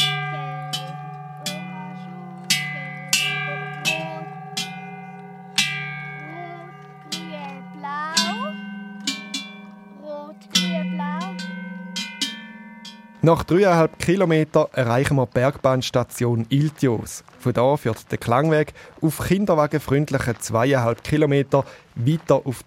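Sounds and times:
bells on a tall mast playing melody: 0:00.0 - 0:14.5
speech: 0:13.2 - 0:22.6.

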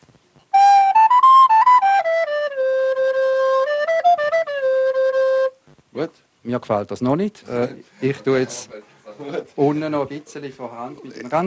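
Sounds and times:
school recorder being test-played: 0:00.5 - 0:05.6
speech: 0:06.0 - 0:11.4.

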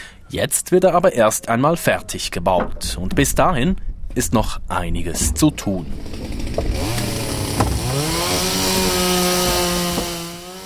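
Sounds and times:
speech: 0:00.3 - 0:06.8
chainsaw cutting wood on Tadashi Kawamata's Log Tower sculpture: 0:05.9 - 0:10.6.

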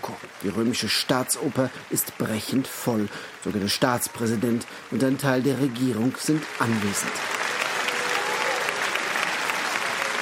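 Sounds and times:
sustained applause from a packed opera house audience: 0:00.0 - 0:10.2
speech: 0:00.4 - 0:07.5.

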